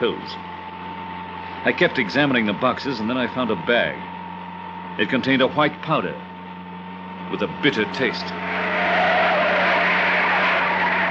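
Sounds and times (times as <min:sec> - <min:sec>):
speech: 0:00.0 - 0:00.5, 0:01.6 - 0:04.1, 0:05.0 - 0:06.3, 0:07.3 - 0:08.6
truck turning and skidding to a stop: 0:08.2 - 0:11.0.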